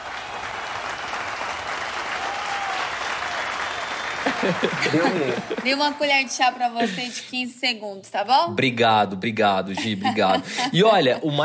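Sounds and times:
group applause: 0.0s - 7.0s
laughter: 4.2s - 6.0s, 9.7s - 11.4s
speech: 4.4s - 11.4s.

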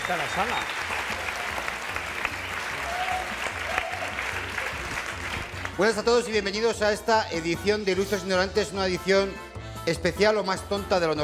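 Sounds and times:
audience applause: 0.0s - 6.3s
speech: 0.1s - 0.9s, 5.8s - 11.2s.

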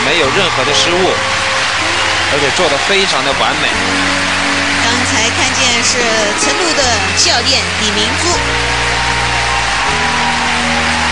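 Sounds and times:
arena crowd cheering: 0.0s - 11.1s
speech: 0.2s - 1.4s, 2.3s - 4.2s, 5.1s - 9.0s.

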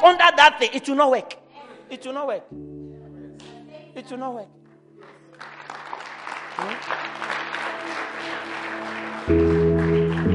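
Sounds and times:
speech: 0.0s - 2.8s, 4.0s - 4.6s, 6.6s - 7.4s, 9.3s - 9.6s
sustained keyboard chords: 2.4s - 5.5s, 6.4s - 10.3s
audience clapping: 5.0s - 10.3s.

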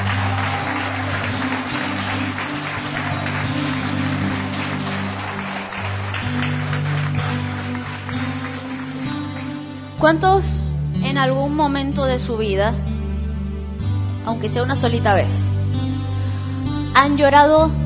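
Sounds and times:
audience applause: 0.0s - 10.0s
low sustained musical chords: 0.0s - 17.2s
speech: 10.0s - 13.0s, 14.3s - 15.4s, 17.0s - 17.8s.

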